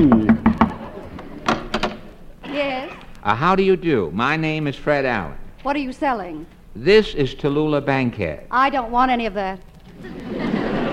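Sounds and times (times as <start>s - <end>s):
knocking on a wooden door: 0.0s - 0.8s
laughter: 0.0s - 1.5s, 9.9s - 10.9s
faint hiss: 0.0s - 10.9s
speech: 3.3s - 10.2s.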